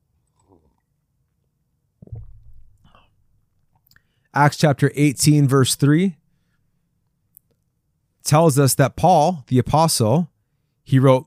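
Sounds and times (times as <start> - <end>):
person sipping coffee: 0.2 - 0.9
speech: 4.4 - 6.2, 8.2 - 10.3, 10.9 - 11.2.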